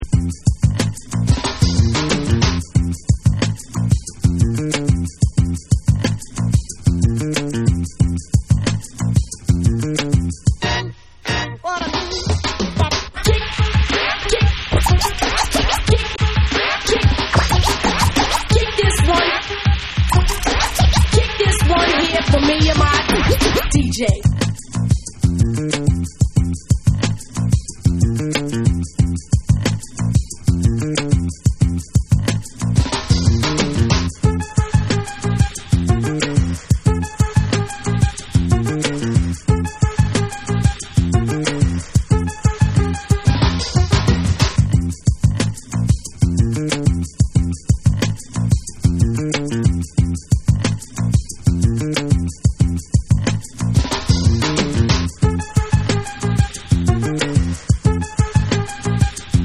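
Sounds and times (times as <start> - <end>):
cha cha cha instrumental music: 0.0 - 59.4.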